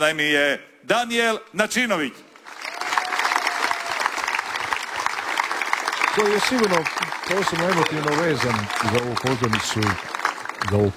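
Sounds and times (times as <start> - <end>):
speech: 0.0 - 2.2, 6.2 - 10.9
audience applause welcoming a poet and performer on stage at a concert: 2.4 - 10.9.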